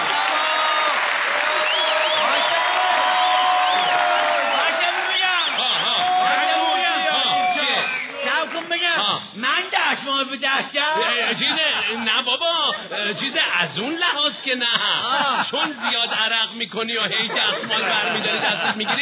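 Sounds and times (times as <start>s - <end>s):
show audience cheering and whooping: 0.0s - 8.4s
audience on a Persian-language entertainment show applauding a contestant: 0.0s - 9.8s
laughter: 4.6s - 7.9s, 10.4s - 19.0s.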